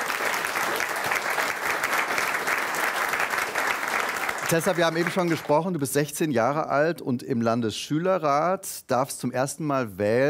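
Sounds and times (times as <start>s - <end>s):
audience applause: 0.0s - 5.8s
speech: 4.5s - 10.2s.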